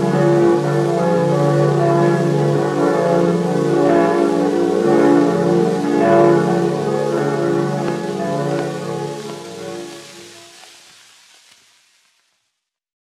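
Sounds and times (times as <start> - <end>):
church bells ringing: 0.0 - 10.4.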